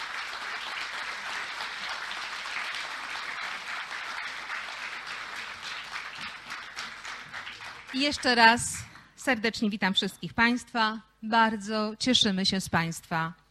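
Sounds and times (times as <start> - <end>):
audience applause at a ceremony in Gdańsk welcoming German officials: 0.0 - 8.6
speech: 7.9 - 13.4.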